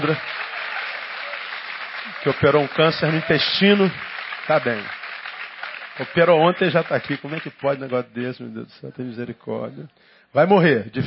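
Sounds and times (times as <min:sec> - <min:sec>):
speech: 0:00.0 - 0:00.4, 0:02.1 - 0:05.0, 0:06.0 - 0:11.0
audience applause: 0:00.0 - 0:08.2.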